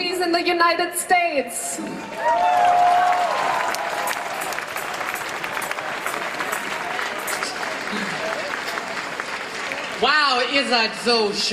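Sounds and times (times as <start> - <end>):
speech: 0.2 - 3.3, 10.0 - 11.5
crowd of about 25,000 cheering and clapping at a Berlin rally: 2.0 - 10.9.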